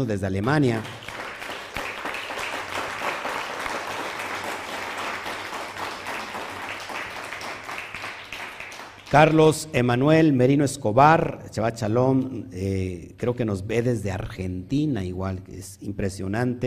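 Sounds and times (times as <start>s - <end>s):
speech: 0.0s - 1.1s, 9.1s - 16.6s
audience applause: 0.8s - 9.4s.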